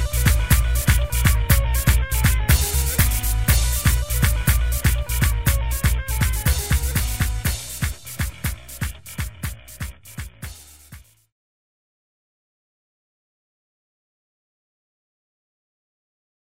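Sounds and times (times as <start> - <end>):
dancehall rock riddim: 0.0 - 11.2.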